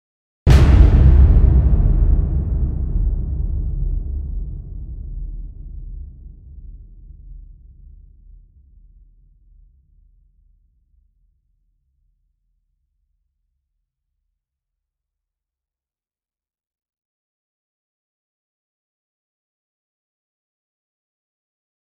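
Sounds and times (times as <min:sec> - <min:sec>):
impact: 0:00.5 - 0:07.2.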